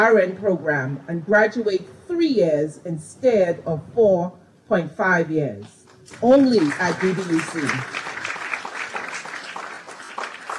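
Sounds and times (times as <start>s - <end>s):
speech: 0.0s - 8.0s
audience applause: 6.1s - 10.5s.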